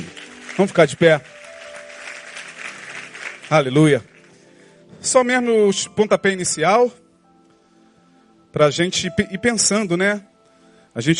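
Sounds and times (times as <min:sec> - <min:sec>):
audience applauding: 0:00.0 - 0:04.4
speech: 0:00.6 - 0:01.4, 0:03.5 - 0:04.1, 0:05.0 - 0:07.0, 0:08.5 - 0:10.3, 0:10.9 - 0:11.1.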